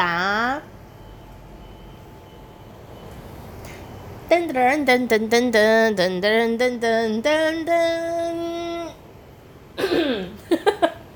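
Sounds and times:
speech: 4.3s - 8.5s
person coughing: 9.8s - 10.6s.

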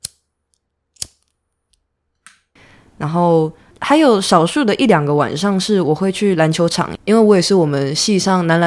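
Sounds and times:
cigarette lighter being flicked: 1.0s - 1.3s
speech: 3.0s - 8.6s.

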